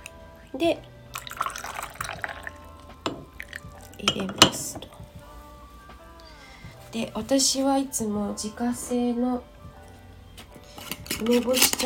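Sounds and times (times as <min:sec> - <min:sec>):
speech: 0:00.5 - 0:00.9, 0:04.0 - 0:05.0, 0:06.9 - 0:09.5, 0:11.2 - 0:11.8
water swirling in a small Japanese teapot: 0:01.1 - 0:04.8
water splashes and drips in a teapot: 0:01.2 - 0:02.7.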